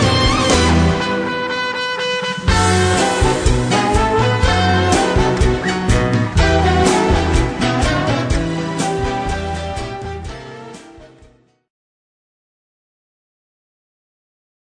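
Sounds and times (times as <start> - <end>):
instrumental music: 0.0 - 11.7.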